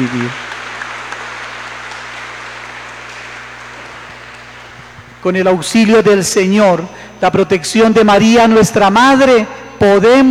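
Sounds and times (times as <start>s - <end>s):
speech: 0.0s - 0.5s, 5.2s - 10.2s
audience applause: 0.0s - 5.2s.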